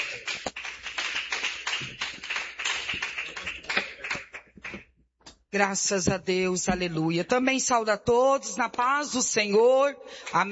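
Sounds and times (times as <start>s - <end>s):
audience clapping: 0.0s - 4.9s
speech: 5.5s - 10.5s.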